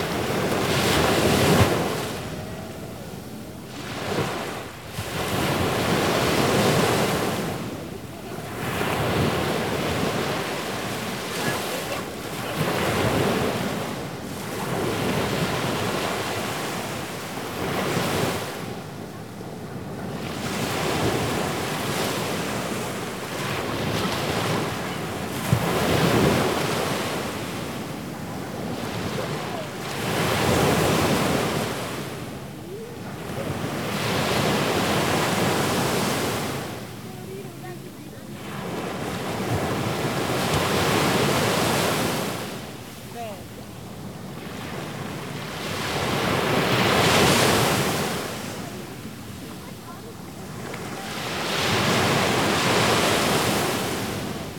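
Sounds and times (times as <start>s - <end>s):
sea waves: 0.0s - 54.5s
child: 11.3s - 12.6s.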